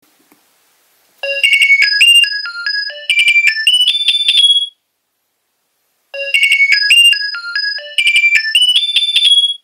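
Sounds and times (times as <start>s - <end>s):
Nokia 2300 ringtones: 1.2s - 4.8s, 6.2s - 9.6s.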